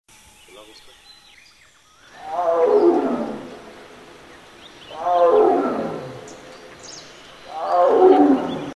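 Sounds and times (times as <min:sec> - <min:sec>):
tiger roaring: 0:02.1 - 0:04.0, 0:04.8 - 0:06.5, 0:07.4 - 0:08.7.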